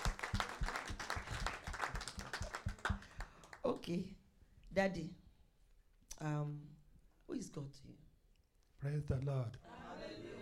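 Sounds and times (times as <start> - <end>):
audience clapping in unison: 0.0 - 3.8
speech: 3.7 - 5.2, 6.2 - 8.1, 8.8 - 9.8.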